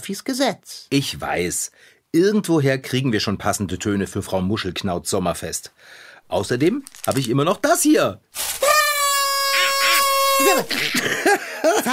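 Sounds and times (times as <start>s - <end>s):
speech: 0.0s - 8.6s, 10.4s - 11.5s
party blower horn tooting: 8.4s - 10.9s
laughter: 9.6s - 11.9s.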